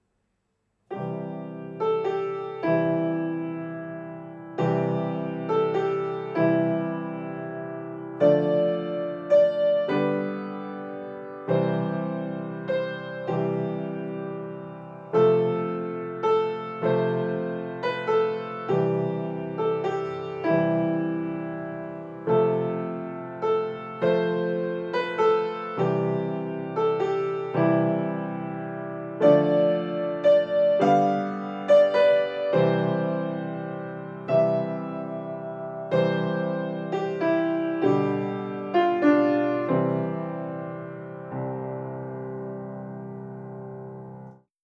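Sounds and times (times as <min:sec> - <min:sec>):
Christmas carol melody for beginners: 0:00.9 - 0:44.5.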